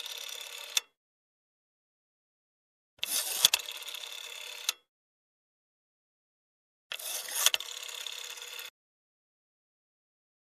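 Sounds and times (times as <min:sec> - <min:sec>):
telephone: 0:00.0 - 0:01.0, 0:03.0 - 0:04.9, 0:06.9 - 0:08.8.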